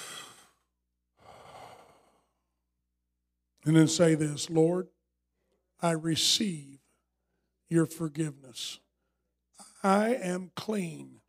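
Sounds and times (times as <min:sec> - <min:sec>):
group inhaling deeply during a prayer: 0:00.0 - 0:02.4
speech: 0:03.6 - 0:05.0, 0:05.8 - 0:06.8, 0:07.7 - 0:08.8, 0:09.8 - 0:11.2.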